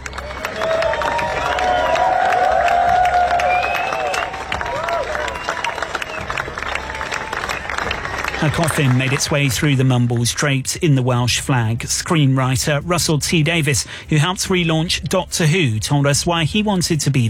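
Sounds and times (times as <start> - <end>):
voices and cheers: 0.0 - 10.2
large crowd applauding a funeral procession outdoors: 0.0 - 10.6
speech: 8.4 - 17.2.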